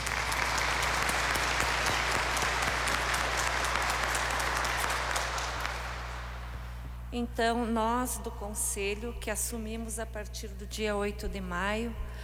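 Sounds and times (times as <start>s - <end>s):
round of applause: 0.0s - 6.8s
speech: 7.1s - 12.2s.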